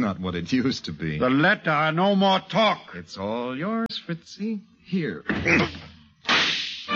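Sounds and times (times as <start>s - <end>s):
speech: 0.0s - 5.9s
left hook punch sound effect in a radio drama fistfight: 6.2s - 6.8s.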